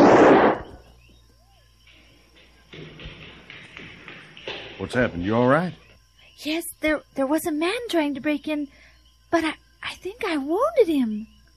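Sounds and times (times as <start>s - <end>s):
gunshot fired at an intruder in a radio drama: 0.0s - 0.8s
speech: 4.8s - 5.8s, 6.4s - 11.3s.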